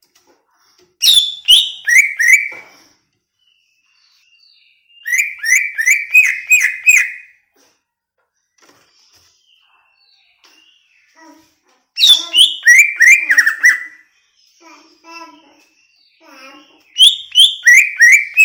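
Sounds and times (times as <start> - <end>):
greater green leafbird whistling song: 1.0 - 2.9, 3.5 - 7.4, 12.0 - 14.1, 16.9 - 18.4.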